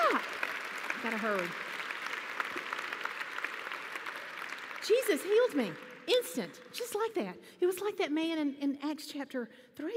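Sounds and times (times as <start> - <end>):
audience clapping for Jesus: 0.0 - 7.0
speech: 1.0 - 1.7, 4.8 - 9.9.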